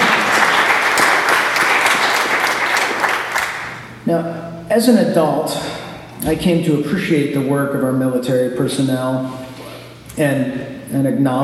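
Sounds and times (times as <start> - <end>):
audience applause: 0.0 - 4.0
speech: 4.1 - 9.4, 10.2 - 11.4.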